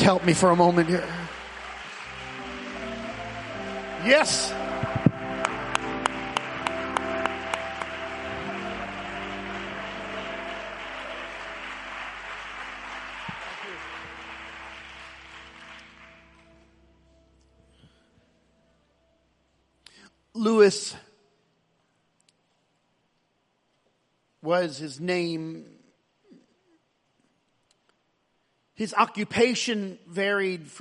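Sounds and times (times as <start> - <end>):
speech: 0.0 - 1.2, 4.0 - 5.0, 20.7 - 21.0, 24.5 - 25.7, 28.8 - 30.7
audience clapping hands: 0.0 - 16.7.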